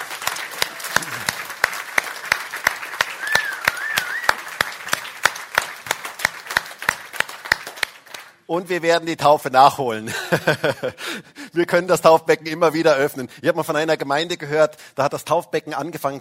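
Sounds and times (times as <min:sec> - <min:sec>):
audience applauding: 0:00.0 - 0:08.4
speech: 0:08.5 - 0:16.1
laughter: 0:10.0 - 0:11.1.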